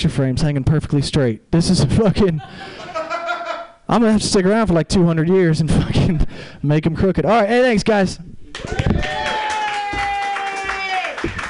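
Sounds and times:
speech: 0.0 - 2.9, 3.9 - 9.2
laughter: 2.1 - 3.8
audience clapping: 8.5 - 11.4.

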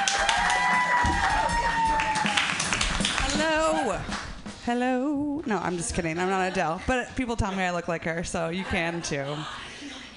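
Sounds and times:
audience clapping and cheering for a comedian: 0.0 - 4.5
speech: 4.7 - 9.6.

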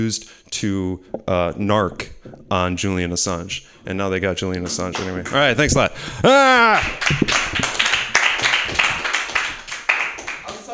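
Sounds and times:
speech: 0.0 - 7.6
person clapping hands: 6.7 - 10.7.

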